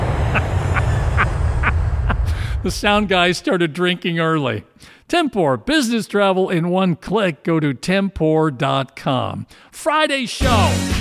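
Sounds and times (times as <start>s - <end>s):
jet airplane sound effect: 0.0s - 3.4s
speech: 2.6s - 10.9s.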